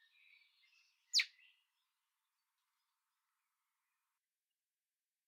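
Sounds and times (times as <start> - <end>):
common blackbird giving sharp high chinking calls: 0.0 - 1.6.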